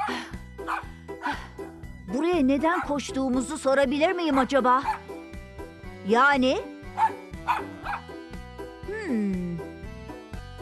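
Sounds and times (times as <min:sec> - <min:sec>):
dog barking: 0:00.0 - 0:00.9, 0:04.3 - 0:05.0, 0:07.0 - 0:08.1
speech: 0:02.1 - 0:05.0, 0:06.0 - 0:07.7.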